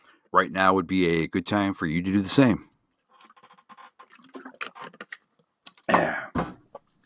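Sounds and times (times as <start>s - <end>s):
speech: 0.3s - 2.7s
person sipping an ice cold drink: 3.2s - 6.0s.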